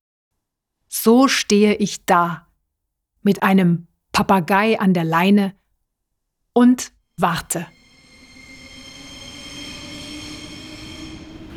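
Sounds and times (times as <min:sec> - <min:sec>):
speech: 0:01.0 - 0:02.5, 0:03.2 - 0:05.6, 0:06.6 - 0:07.8
city ring railway train squealing: 0:07.7 - 0:11.5.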